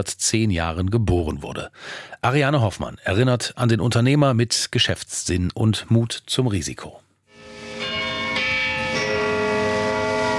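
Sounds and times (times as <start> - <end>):
speech: 0.0 - 7.0
St. Peter tower church bell in Zürich striking dull noon strokes: 7.3 - 10.3.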